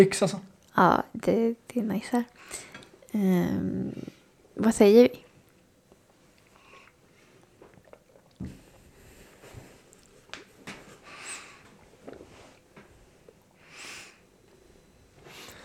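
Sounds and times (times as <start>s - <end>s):
speech: 0.0s - 5.2s, 8.4s - 8.6s
wet chewing and biting of pancakes with homemade queen's jam: 5.5s - 8.8s.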